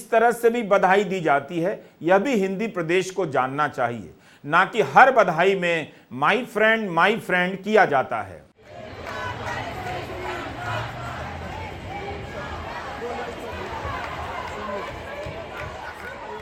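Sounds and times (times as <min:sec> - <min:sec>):
speech: 0:00.1 - 0:08.5
crowd gathered in a city square: 0:08.6 - 0:16.4.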